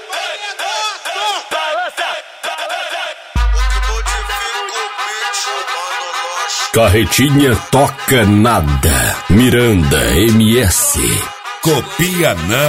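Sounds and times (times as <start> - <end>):
crowd shouting: 0.0 - 6.0
deep booming bass hit: 3.4 - 4.4
speech: 6.8 - 12.6.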